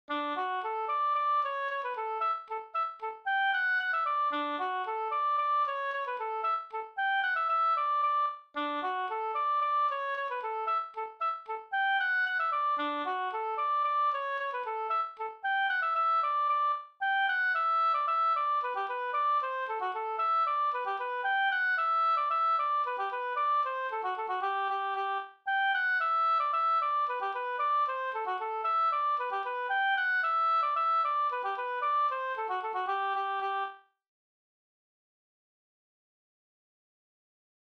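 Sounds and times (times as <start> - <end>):
polka music: 0.1 - 33.8.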